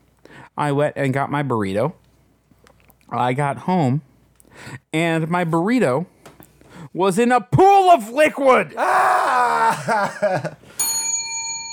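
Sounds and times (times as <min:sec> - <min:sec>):
speech: 0:00.6 - 0:02.0, 0:03.1 - 0:06.2, 0:06.9 - 0:10.6
laughter: 0:09.5 - 0:10.7
bell ding sound effect: 0:10.8 - 0:11.7.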